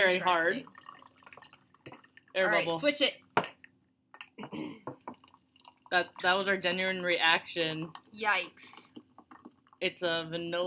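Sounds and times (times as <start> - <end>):
speech: 0.0 - 0.8, 2.4 - 3.2, 5.9 - 8.8, 9.8 - 10.6
soda pouring into a cup: 0.0 - 2.5, 5.0 - 10.0.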